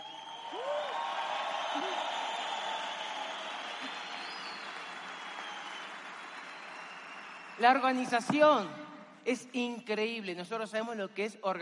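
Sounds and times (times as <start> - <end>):
whistles: 0.0 - 7.6
large audience applauding: 0.0 - 8.0
speech: 7.6 - 11.6.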